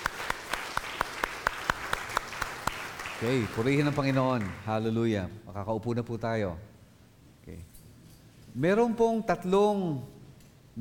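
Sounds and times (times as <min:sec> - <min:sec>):
church congregation clapping in praise of the Lord: 0:00.0 - 0:05.0
speech: 0:03.2 - 0:06.7, 0:07.5 - 0:07.7, 0:08.5 - 0:10.2.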